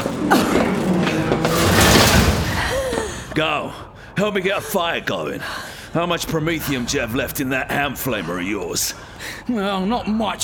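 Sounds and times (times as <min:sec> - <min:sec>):
speech: 0:00.3 - 0:00.6, 0:03.4 - 0:10.4
metal piece jammed against door: 0:00.6 - 0:03.5
low rumble: 0:01.4 - 0:03.4.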